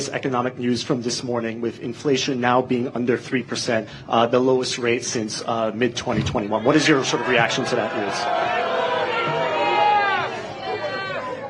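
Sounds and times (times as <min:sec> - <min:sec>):
speech: 0:00.0 - 0:08.6
crowd reaction: 0:06.1 - 0:11.4.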